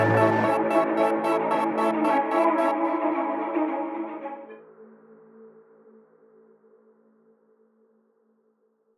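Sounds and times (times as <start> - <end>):
ambient music: 0.0 - 4.5.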